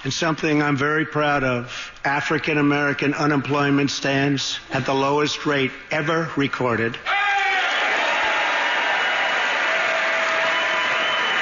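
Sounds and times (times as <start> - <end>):
speech: 0.0 - 7.2
large audience cheering and applauding: 7.1 - 11.3.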